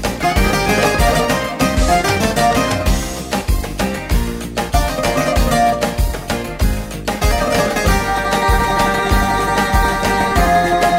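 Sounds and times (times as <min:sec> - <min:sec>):
Greek bouzouki playing rouba: 0:00.2 - 0:03.4, 0:04.8 - 0:06.5, 0:07.2 - 0:10.9.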